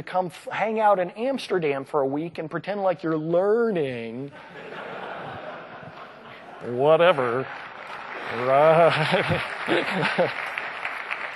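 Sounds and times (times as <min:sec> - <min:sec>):
speech: 0:00.0 - 0:04.8, 0:06.6 - 0:07.6, 0:08.3 - 0:10.4
laughter: 0:04.3 - 0:10.8
crowd applause: 0:06.8 - 0:11.3.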